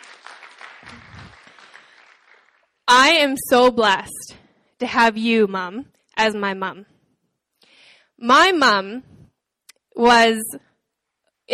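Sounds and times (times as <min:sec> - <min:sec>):
audience clapping: 0:00.0 - 0:02.8
speech: 0:03.0 - 0:06.9, 0:08.2 - 0:09.1, 0:10.0 - 0:10.7.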